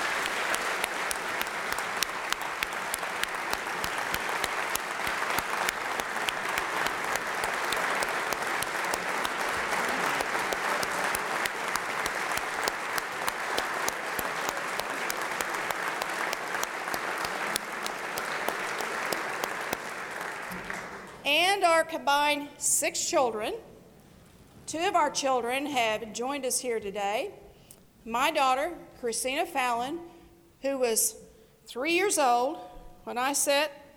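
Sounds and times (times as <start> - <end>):
audience applause: 0.0 - 21.1
speech: 21.8 - 23.7, 24.7 - 27.4, 28.0 - 33.8.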